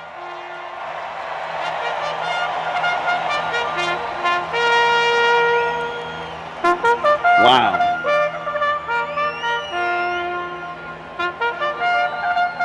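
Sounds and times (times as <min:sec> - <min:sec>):
brassy horn at a racetrack starting gate: 0:00.0 - 0:00.9, 0:01.7 - 0:06.0, 0:06.6 - 0:12.6
low crowd murmur: 0:07.4 - 0:08.2
speech: 0:07.5 - 0:07.8.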